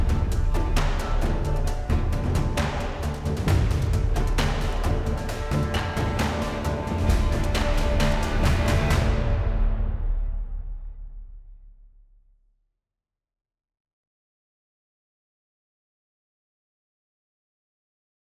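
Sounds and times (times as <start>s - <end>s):
music: 0.0s - 12.4s.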